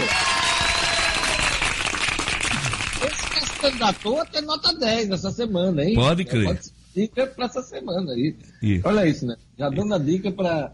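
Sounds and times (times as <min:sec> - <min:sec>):
hands clapping: 0:00.0 - 0:04.2
speech: 0:03.6 - 0:10.7.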